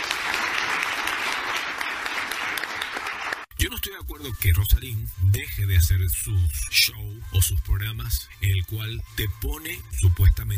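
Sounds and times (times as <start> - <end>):
audience applause: 0.0 - 3.5
speech: 3.7 - 10.5.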